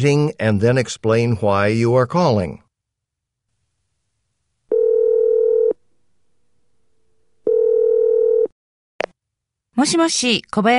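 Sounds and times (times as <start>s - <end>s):
speech: 0.0s - 2.6s, 9.8s - 10.7s
telephone ringback tone: 4.7s - 5.8s, 7.4s - 8.5s.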